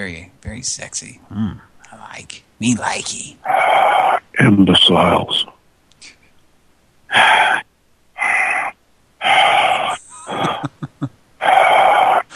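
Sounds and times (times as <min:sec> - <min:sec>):
speech: 0:00.0 - 0:05.6, 0:07.1 - 0:07.6
heavy breathing on a 1970s prank phone call: 0:07.1 - 0:10.7, 0:11.4 - 0:12.3
laughter: 0:10.0 - 0:11.1.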